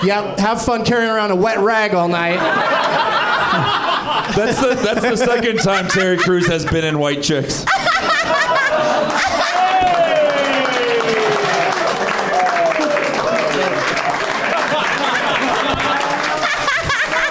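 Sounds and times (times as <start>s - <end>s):
speech: 0.0s - 10.0s
laughter: 2.4s - 9.9s, 14.2s - 17.2s
crowd applauding: 8.6s - 17.2s.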